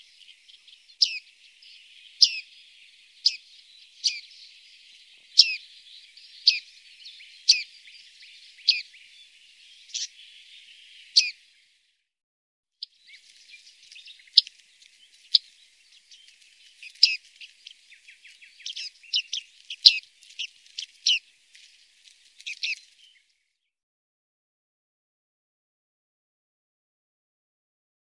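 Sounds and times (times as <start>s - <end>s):
bearded reedling metallic ping calls: 0.0s - 11.5s, 12.8s - 21.3s, 22.4s - 23.1s.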